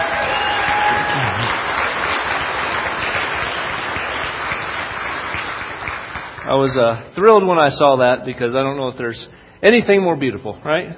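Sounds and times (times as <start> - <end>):
audience applause for a father after his baptism: 0.0 - 6.4
speech: 6.5 - 10.9.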